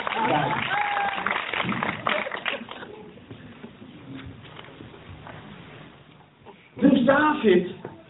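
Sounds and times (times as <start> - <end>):
audience applause: 0.0 - 3.0
speech: 7.4 - 7.8.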